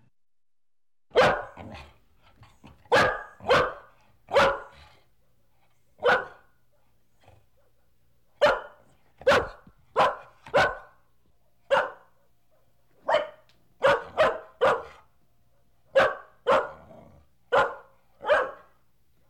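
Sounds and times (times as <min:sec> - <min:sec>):
medium-sized dog barking: 0:01.1 - 0:01.9, 0:02.8 - 0:05.4, 0:06.0 - 0:06.6, 0:07.5 - 0:16.9, 0:17.5 - 0:19.2.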